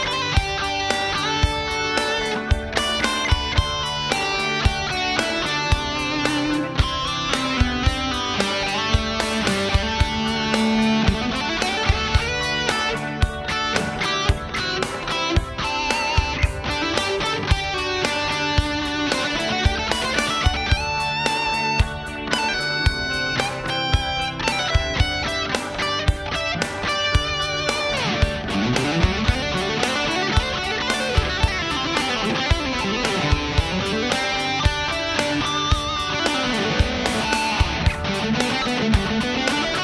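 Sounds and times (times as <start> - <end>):
high gain electric guitar on bridge pickup: 0.0 - 39.8.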